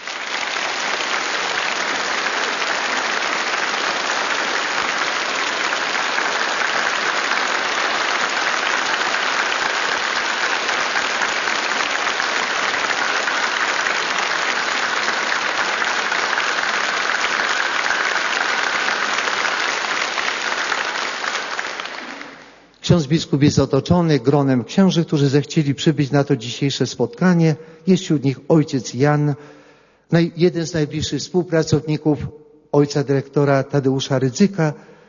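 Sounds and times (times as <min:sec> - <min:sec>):
applause: 0:00.0 - 0:22.9
speech: 0:22.9 - 0:34.9.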